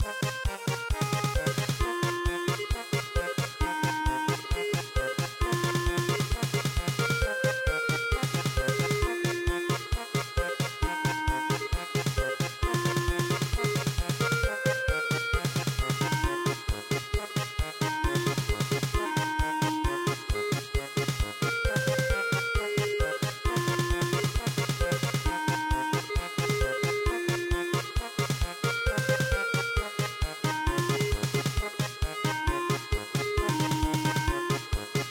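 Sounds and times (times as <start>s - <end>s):
traditional German polka music: 0.0s - 35.0s.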